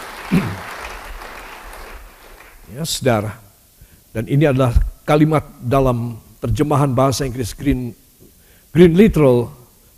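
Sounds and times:
audience applause: 0.0 - 2.6
speech: 2.8 - 3.4, 4.2 - 8.0, 8.7 - 9.6.

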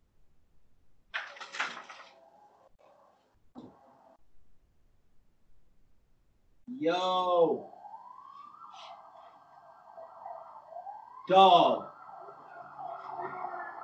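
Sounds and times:
police siren wailing outside: 6.7 - 13.8
speech: 6.8 - 7.7, 11.3 - 11.9.

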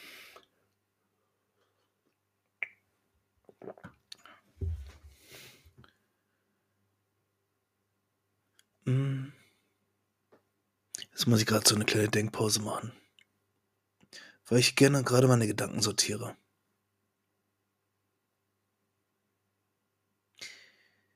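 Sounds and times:
person sipping coffee: 3.5 - 4.3
speech: 11.2 - 13.0, 14.5 - 16.4.

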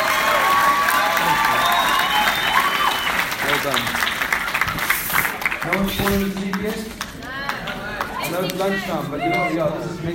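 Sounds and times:
cheering: 0.0 - 4.9
applause: 0.0 - 8.5
speech: 6.0 - 7.0, 8.3 - 10.1.

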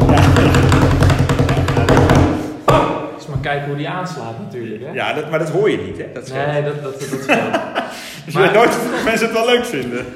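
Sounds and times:
laughter: 0.0 - 2.1, 6.7 - 10.1
drumroll tapped by hand on a tabletop: 0.0 - 2.4
speech: 3.4 - 10.1.

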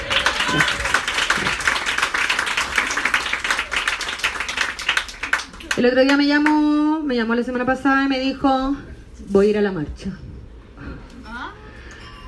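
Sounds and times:
audience applause: 0.0 - 6.2
speech: 0.5 - 0.8, 5.8 - 10.3.

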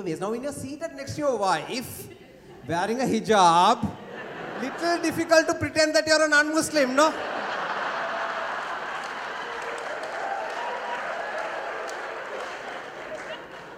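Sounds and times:
speech: 0.0 - 4.0, 4.6 - 7.4
laughter: 1.4 - 13.7
audience clapping: 7.6 - 13.7.

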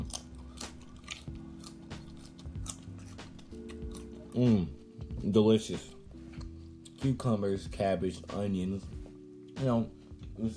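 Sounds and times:
raw carrots being bitten and chewed: 0.0 - 4.8
speech: 4.4 - 6.0, 7.0 - 9.0, 9.6 - 10.5.

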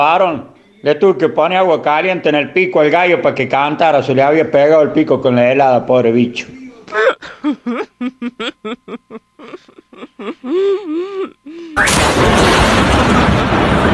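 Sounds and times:
speech: 0.0 - 13.9
person laughing: 6.9 - 11.9
thunder clap and rumble: 11.8 - 13.9.

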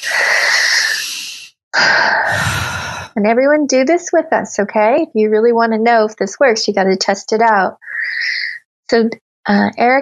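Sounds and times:
big deep breath during an emotional tapping exercise: 0.0 - 3.2
loud airy exhale: 0.0 - 3.2
speech: 3.2 - 10.0.

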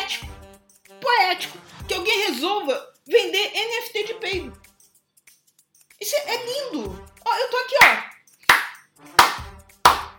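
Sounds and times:
speech: 1.3 - 4.6, 6.0 - 8.1
hand clapping: 7.8 - 10.1.

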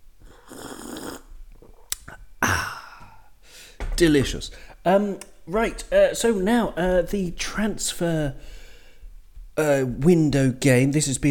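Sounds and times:
slurp of coffee being sipped: 0.2 - 1.9
speech: 4.0 - 8.6, 9.6 - 11.2.

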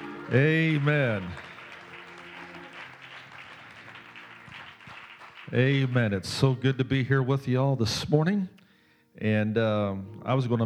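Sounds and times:
audience clapping hands: 0.0 - 6.5
speech: 0.3 - 1.5, 5.5 - 8.6, 9.2 - 10.6.

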